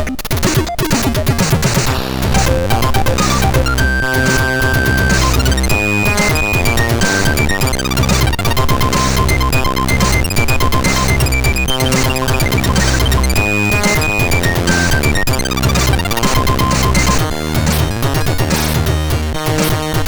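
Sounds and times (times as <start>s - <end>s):
chiptune music on MOS6581R2: 0.0s - 20.0s.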